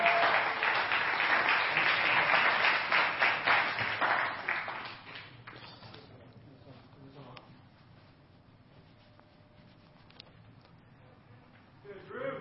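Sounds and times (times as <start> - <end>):
audience applause: 0.0 - 5.2.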